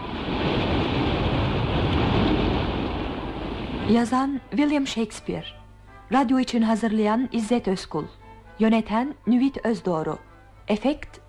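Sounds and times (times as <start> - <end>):
storm sound effect of roaring wind: 0.0 - 3.9
storm sound effect of crashing waves: 0.0 - 4.2
speech: 3.9 - 11.2.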